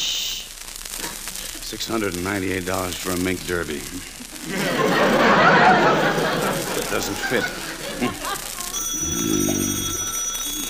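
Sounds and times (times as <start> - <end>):
speech: 1.7 - 8.4
laughter: 4.0 - 8.8
telephone bell ringing with a bright metallic high trill: 8.7 - 10.6.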